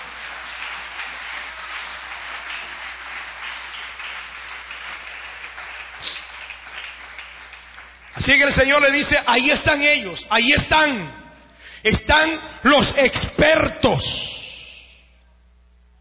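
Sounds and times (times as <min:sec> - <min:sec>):
audience applauding: 0:00.0 - 0:09.0
speech: 0:08.2 - 0:11.2, 0:11.8 - 0:14.3.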